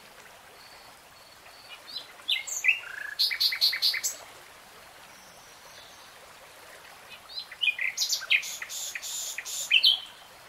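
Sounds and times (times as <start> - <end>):
nightingale song: 0.6 - 4.2, 7.2 - 10.2.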